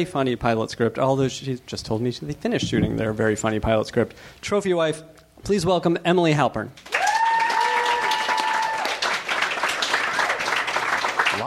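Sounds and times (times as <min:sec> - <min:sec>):
speech: 0:00.0 - 0:06.9
audience applause: 0:06.8 - 0:11.4.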